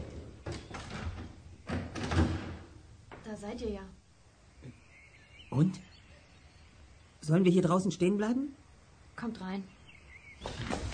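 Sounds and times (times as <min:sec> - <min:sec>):
front door being opened: 0:00.0 - 0:03.3, 0:10.4 - 0:10.9
speech: 0:03.4 - 0:04.0, 0:05.5 - 0:05.9, 0:07.3 - 0:08.6, 0:09.2 - 0:09.8.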